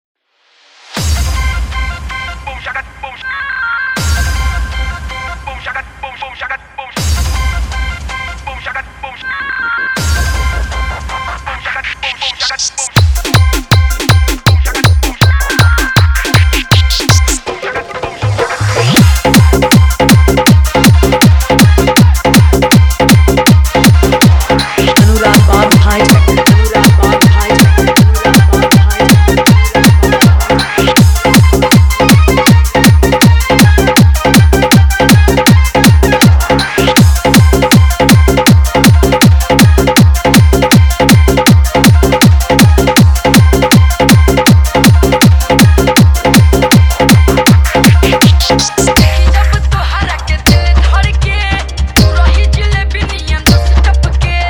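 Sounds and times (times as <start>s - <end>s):
full dholki bass garda dance mix: 0.8s - 3.0s, 3.8s - 54.4s.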